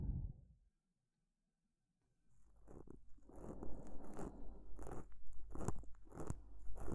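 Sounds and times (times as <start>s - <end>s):
ear cleaning ASMR sounds: 2.3s - 6.9s.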